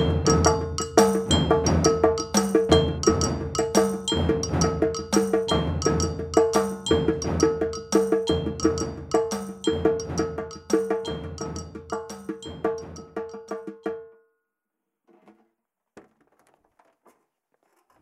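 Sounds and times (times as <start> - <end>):
percussion: 0.0 - 14.2.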